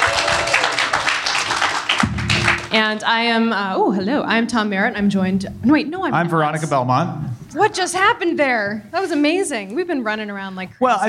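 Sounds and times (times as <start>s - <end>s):
audience round of applause: 0.0s - 3.0s
low thump: 2.0s - 2.8s
speech: 2.8s - 11.0s.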